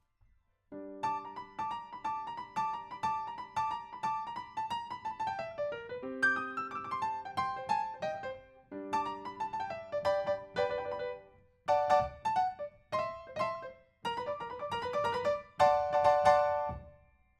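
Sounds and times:
rock and roll piano: 0:00.9 - 0:17.0.

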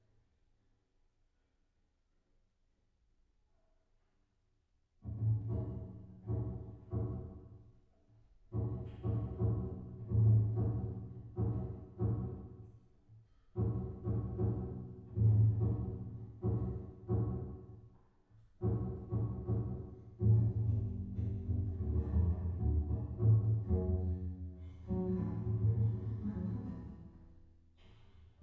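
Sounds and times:
bass: 0:05.0 - 0:07.7, 0:08.5 - 0:28.4.

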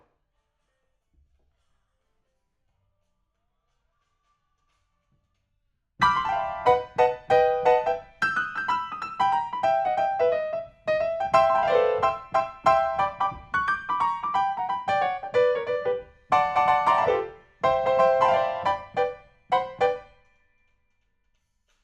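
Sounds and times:
rock and roll piano: 0:06.0 - 0:20.2.

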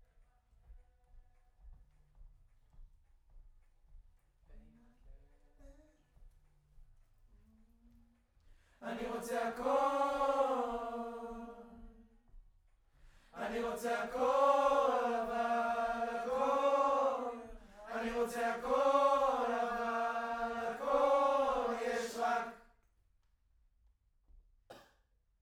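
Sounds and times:
distant choir: 0:08.8 - 0:12.0, 0:13.3 - 0:22.7.

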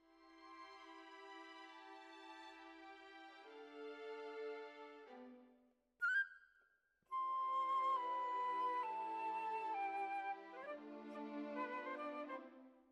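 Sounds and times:
flute: 0:06.0 - 0:12.9.

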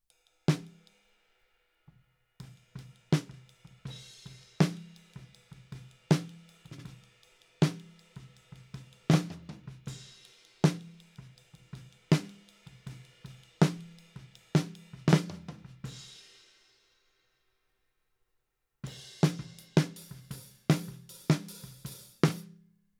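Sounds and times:
snare drum recorded from the top: 0:02.7 - 0:16.0, 0:19.0 - 0:22.6.

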